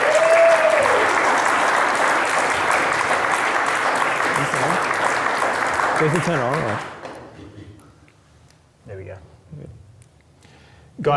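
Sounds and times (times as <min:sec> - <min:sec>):
audience applause: 0:00.0 - 0:07.4
speech: 0:06.0 - 0:06.9.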